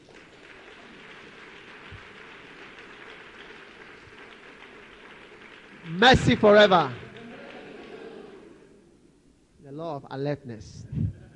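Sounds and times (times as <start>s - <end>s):
church audience clapping to welcome the preacher's wife: 0.0s - 8.7s
speech: 5.9s - 7.0s, 10.0s - 11.0s.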